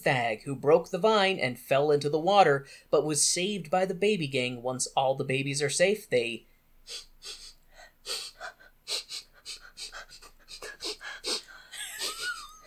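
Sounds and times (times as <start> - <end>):
speech: 0.0 - 7.4, 8.1 - 8.3
rapid rhythmic sniffing: 6.8 - 11.8.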